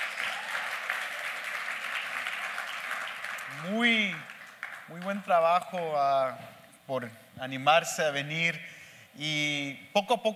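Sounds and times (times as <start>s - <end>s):
audience applause: 0.0s - 5.4s
speech: 3.5s - 4.3s, 4.9s - 10.3s.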